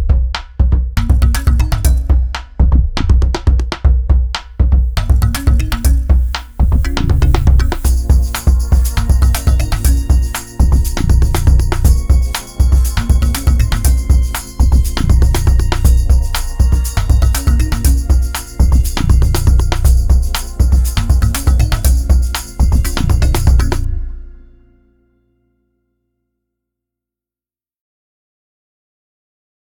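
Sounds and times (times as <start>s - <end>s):
drum groove: 0.0s - 23.9s.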